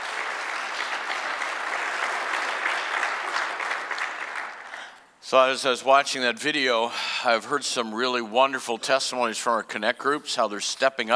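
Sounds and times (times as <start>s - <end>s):
church congregation clapping hands during a morning service: 0.0s - 5.1s
speech: 5.3s - 11.1s.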